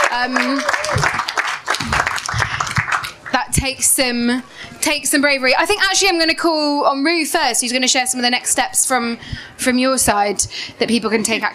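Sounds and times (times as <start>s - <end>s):
audience applause: 0.0s - 3.4s
speech: 0.1s - 1.2s, 3.5s - 11.5s.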